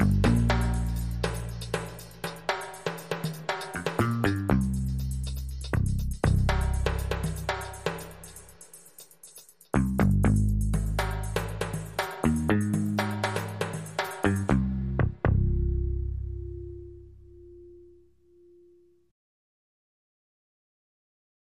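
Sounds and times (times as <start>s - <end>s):
bass: 0.0s - 8.6s, 9.8s - 19.1s
percussion: 0.0s - 14.7s
drums: 0.0s - 15.4s.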